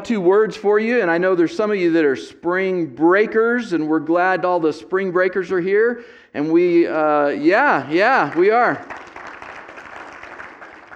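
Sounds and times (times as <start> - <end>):
speech: 0.0 - 9.1
audience member clapping hands: 8.1 - 10.9.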